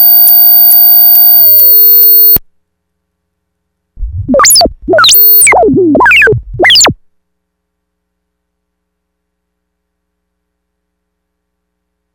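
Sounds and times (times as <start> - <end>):
bass sequence: 4.0 - 7.0
synths: 4.0 - 7.0.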